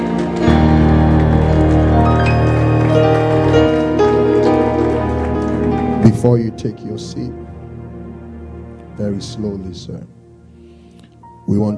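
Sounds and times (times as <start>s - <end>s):
audience clapping hands: 0.0s - 7.0s
speech: 6.2s - 7.5s, 9.0s - 10.2s, 11.5s - 11.7s.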